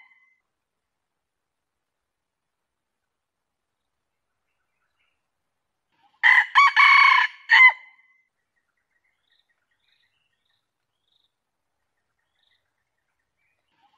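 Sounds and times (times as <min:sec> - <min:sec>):
junglefowl crowing: 0:06.2 - 0:07.9.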